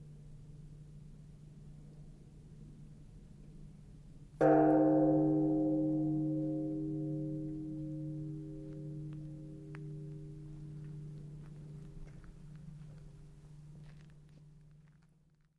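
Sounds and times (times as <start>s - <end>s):
Buddhist temple bell rung at night in Sannohe: 4.4s - 12.8s.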